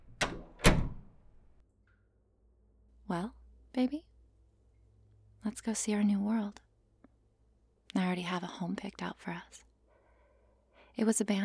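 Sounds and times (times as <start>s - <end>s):
wooden doors being opened: 0.0s - 1.6s
speech: 3.1s - 4.1s, 5.4s - 6.7s, 7.9s - 9.7s, 11.0s - 11.4s.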